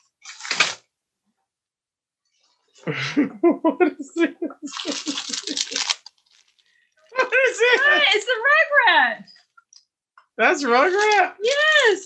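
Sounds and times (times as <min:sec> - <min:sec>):
Amazon package being ripped open: 0:00.2 - 0:00.8, 0:04.8 - 0:06.6
laughter: 0:02.8 - 0:06.0, 0:07.2 - 0:08.8
speech: 0:02.8 - 0:06.0, 0:07.4 - 0:09.4, 0:10.4 - 0:12.0.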